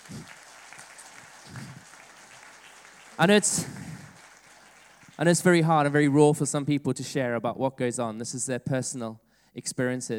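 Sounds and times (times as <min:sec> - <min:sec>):
audience applause: 0:00.0 - 0:06.2
speech: 0:03.2 - 0:03.8, 0:05.2 - 0:10.1.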